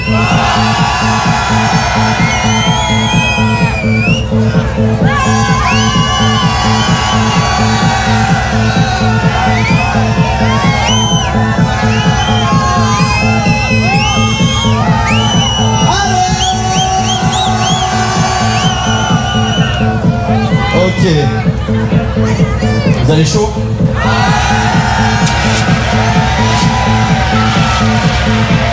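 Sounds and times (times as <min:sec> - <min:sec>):
large audience cheering and shouting: 0:00.0 - 0:21.3, 0:24.0 - 0:28.7
steady pulsing beat of music: 0:00.0 - 0:28.7
speech: 0:00.1 - 0:06.0, 0:20.7 - 0:21.5, 0:23.1 - 0:24.6.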